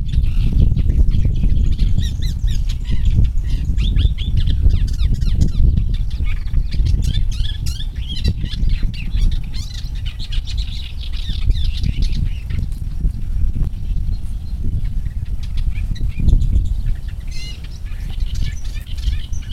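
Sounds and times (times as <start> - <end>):
thick-billed warbler Iduna aedon calling: 0.0 - 19.5.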